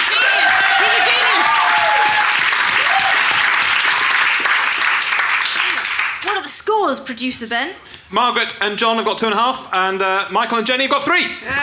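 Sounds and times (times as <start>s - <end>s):
studio audience applause: 0.0s - 6.5s
speech: 6.9s - 11.6s.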